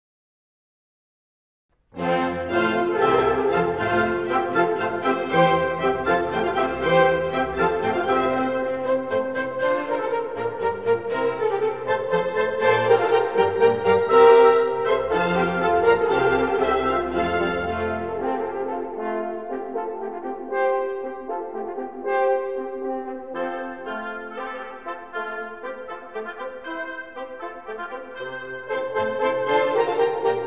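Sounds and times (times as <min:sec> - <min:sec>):
baroque orchestra playing: 0:01.9 - 0:30.4.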